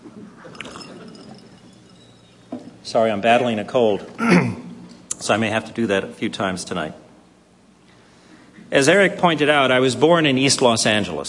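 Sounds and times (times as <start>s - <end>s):
steady low hum: 0.0s - 11.2s
glass clink: 0.4s - 2.8s
speech: 2.8s - 4.6s, 5.3s - 7.0s, 8.7s - 11.2s.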